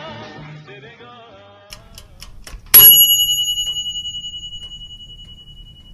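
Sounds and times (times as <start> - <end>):
stove timer bell ringing: 2.7 - 5.9.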